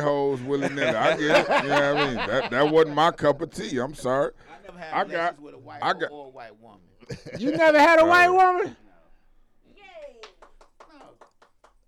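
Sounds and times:
speech: 0.0s - 8.8s
laughter: 0.3s - 3.2s, 7.0s - 8.0s
hands clapping: 10.0s - 11.8s.

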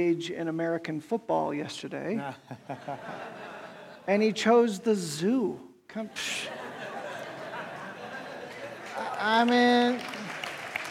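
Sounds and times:
speech: 0.0s - 6.6s, 9.2s - 10.1s
laughter: 2.2s - 4.1s, 6.1s - 9.8s
audience applause: 8.4s - 10.9s.

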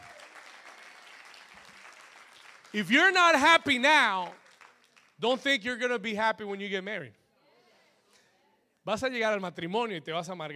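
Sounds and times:
audience applause: 0.0s - 3.4s, 4.1s - 5.1s
speech: 2.7s - 4.4s, 5.2s - 7.2s, 8.8s - 10.5s.

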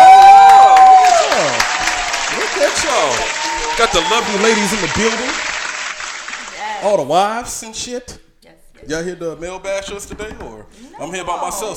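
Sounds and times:
crowd cheering and applauding: 0.0s - 6.9s
speech: 3.8s - 5.5s, 6.8s - 8.2s, 8.8s - 11.7s.

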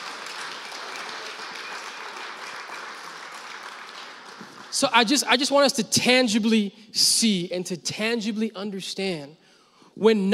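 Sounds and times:
audience applause: 0.0s - 4.9s
speech: 4.8s - 9.4s, 10.0s - 10.3s.

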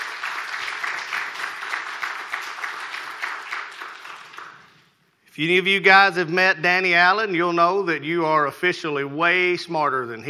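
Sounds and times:
audience applause: 0.0s - 4.7s
speech: 5.4s - 10.2s.

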